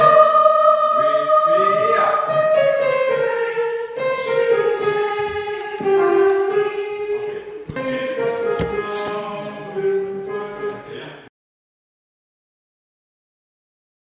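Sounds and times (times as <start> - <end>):
soprano singing: 0.0 - 11.0.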